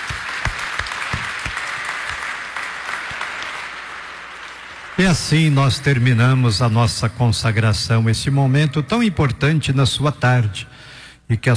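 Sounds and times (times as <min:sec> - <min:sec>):
applause: 0:00.0 - 0:06.8
speech: 0:05.0 - 0:11.5.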